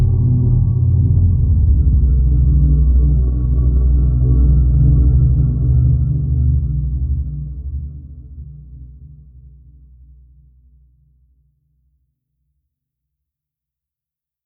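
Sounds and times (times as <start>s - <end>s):
drone: 0.0s - 8.1s.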